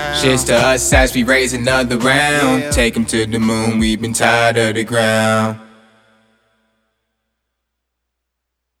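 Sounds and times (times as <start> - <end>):
hip hop music: 0.0 - 6.0.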